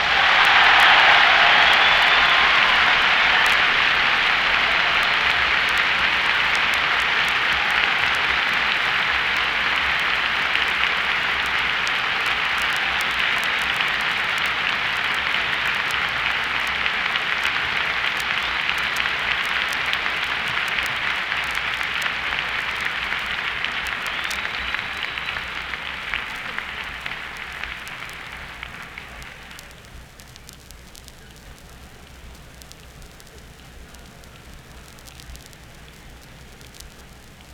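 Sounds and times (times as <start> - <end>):
applause: 0.0 - 37.5.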